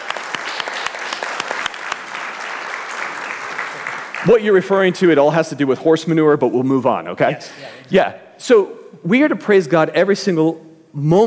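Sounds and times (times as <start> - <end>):
audience applauding: 0.0 - 5.0
speech: 4.2 - 11.2.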